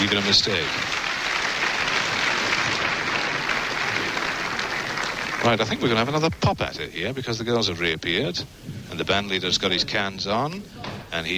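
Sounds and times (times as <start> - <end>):
speech: 0.0 - 1.1, 5.4 - 11.3
audience applause: 0.0 - 6.5.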